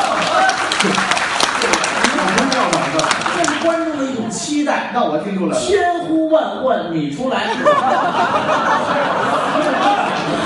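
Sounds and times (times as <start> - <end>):
audience applause: 0.0 - 4.0
speech: 4.3 - 10.4
laughter: 7.4 - 10.4.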